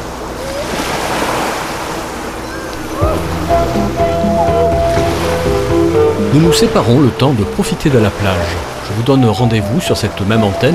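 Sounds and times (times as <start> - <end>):
ocean waves washing onto the beach at Grands Sables on Belle-Île-en-Mer: 0.0 - 10.7
low droning tone: 2.8 - 7.6
speech: 6.3 - 10.7.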